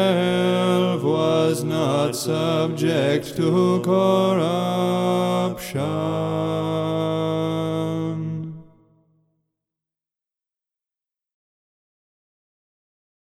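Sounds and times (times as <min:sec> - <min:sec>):
Byzantine chanted hymn in first tone: 0:00.0 - 0:08.8.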